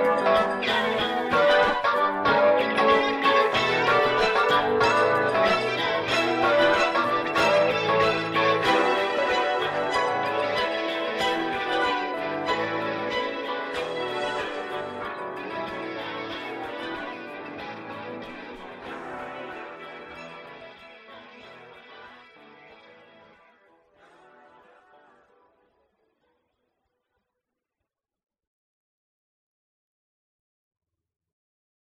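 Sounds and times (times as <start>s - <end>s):
modulated guitar solo: 0.0s - 23.4s.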